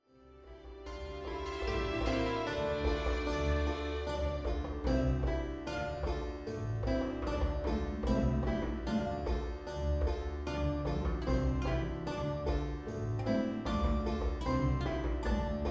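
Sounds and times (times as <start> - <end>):
traditional Sephardic folk tune: 0.0 - 15.6.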